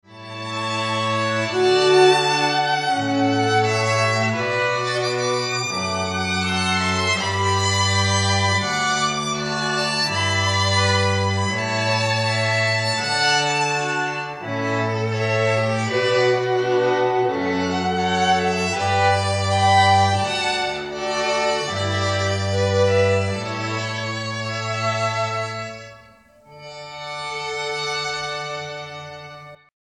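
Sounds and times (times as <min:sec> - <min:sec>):
string quartet playing live: 0:00.1 - 0:29.6.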